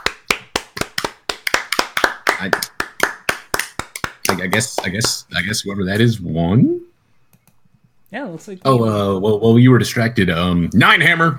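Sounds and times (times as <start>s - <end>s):
people clapping: 0.0s - 5.3s
speech: 2.4s - 2.7s, 4.3s - 6.8s, 8.1s - 11.3s.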